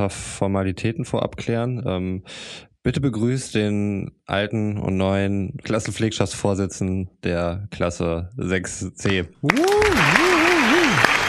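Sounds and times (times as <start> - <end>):
speech: 0.0 - 10.3
applause: 9.4 - 11.2.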